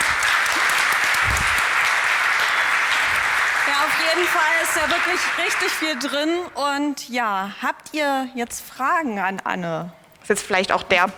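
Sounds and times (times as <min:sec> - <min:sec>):
audience applause in a large hall: 0:00.0 - 0:06.6
speech: 0:04.1 - 0:11.1.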